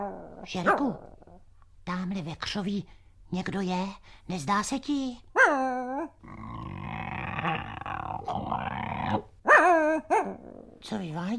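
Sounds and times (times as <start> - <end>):
speech: 0.0 - 1.1, 1.9 - 6.5, 10.0 - 11.3
big dog growling and barking: 0.0 - 1.4, 5.3 - 10.9.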